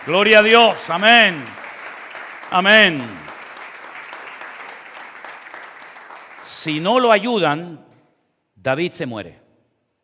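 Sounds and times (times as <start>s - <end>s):
speech: 0.0s - 1.6s, 2.5s - 3.3s, 6.6s - 7.9s, 8.6s - 9.4s
audience applause: 0.0s - 6.8s.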